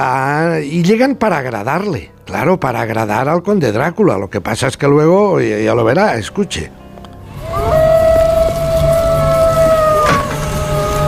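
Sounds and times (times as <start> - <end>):
speech: 0.0 - 6.8
terrible howls in a radio drama: 7.3 - 11.0.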